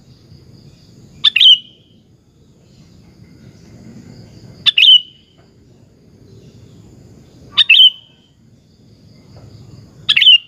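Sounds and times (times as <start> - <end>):
sooty-headed bulbul singing bubbling phrases: 1.1 - 2.0, 4.7 - 5.4, 7.5 - 8.3, 10.1 - 10.4.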